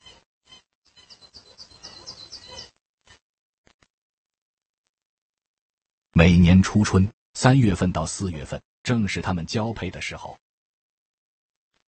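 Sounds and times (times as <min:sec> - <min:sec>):
northern goshawk call: 0:00.9 - 0:02.7
speech: 0:06.2 - 0:10.4.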